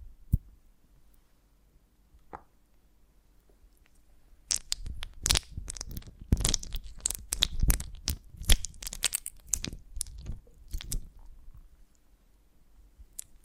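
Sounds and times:
honeycomb on a branch bitten and chewed: 4.5 - 11.2.

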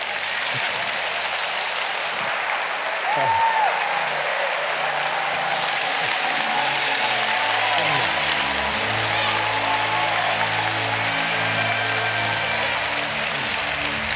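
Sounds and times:
crowd clapping: 0.0 - 14.1
faint voices: 0.0 - 14.1
laughter: 0.1 - 14.1
person whooping: 3.0 - 14.1.

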